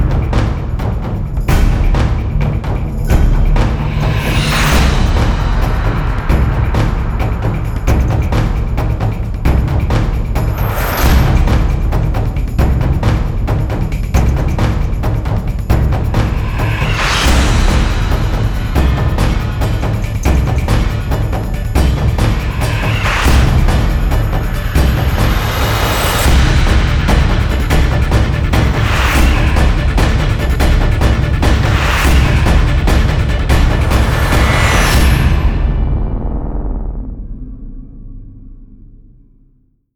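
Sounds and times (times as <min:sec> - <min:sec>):
drum effects: 0:00.0 - 0:37.4.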